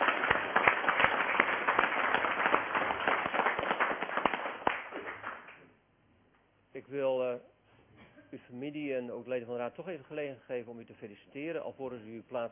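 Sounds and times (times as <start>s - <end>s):
applause: 0.0s - 5.6s
speech: 8.4s - 12.5s.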